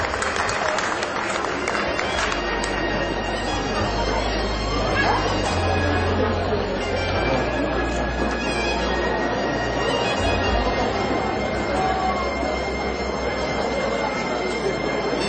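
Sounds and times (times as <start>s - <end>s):
audience applause: 0.0s - 3.5s
murmur of crowd voices: 0.0s - 15.2s.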